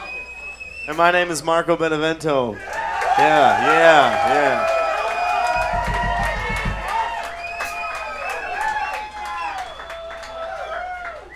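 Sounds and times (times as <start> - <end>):
speech: 0.8 - 4.8
audience applause: 2.6 - 11.3
whoops and cheering voices: 2.6 - 11.3
low thumping pulse: 5.6 - 7.2.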